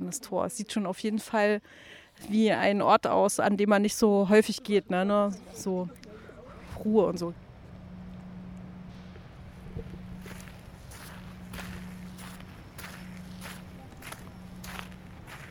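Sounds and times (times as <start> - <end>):
speech: 0.1 - 6.0, 6.8 - 7.4
people's footsteps outdoors in an industrial area: 5.2 - 15.5
constant low hum: 6.0 - 15.5.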